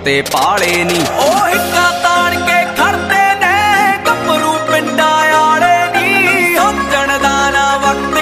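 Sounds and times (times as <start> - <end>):
Punjabi song ringtone: 0.2 - 8.2.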